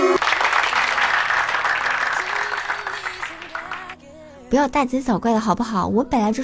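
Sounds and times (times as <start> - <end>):
applause: 0.1 - 4.0
speech: 4.5 - 6.4.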